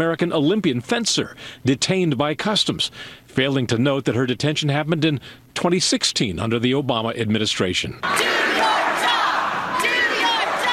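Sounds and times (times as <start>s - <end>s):
speech: 0.0s - 8.7s
hostile crowd chanting at a town hall meeting held by Republican members of Congress: 8.0s - 10.7s.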